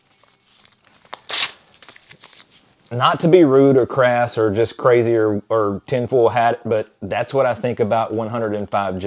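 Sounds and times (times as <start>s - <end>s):
faint crinkles and clicks of handled paper: 0.0s - 2.8s
paper sheets ripping: 1.1s - 2.5s
speech: 2.9s - 9.0s.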